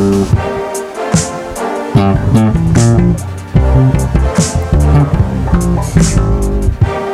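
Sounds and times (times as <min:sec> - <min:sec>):
bass: 0:00.0 - 0:00.7, 0:01.9 - 0:07.0.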